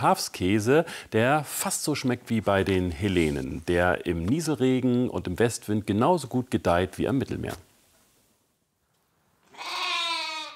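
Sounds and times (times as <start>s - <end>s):
speech: 0.0s - 7.7s
lambs bleating: 9.5s - 10.5s.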